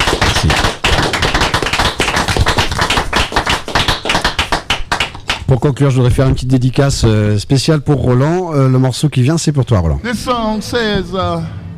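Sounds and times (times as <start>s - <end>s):
studio audience applause: 0.0s - 5.5s
speech: 5.5s - 11.6s.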